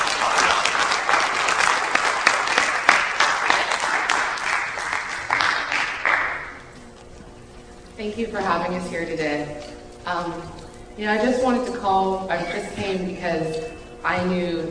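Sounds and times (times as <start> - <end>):
audience applause: 0.0 - 6.7
speech: 8.2 - 14.6.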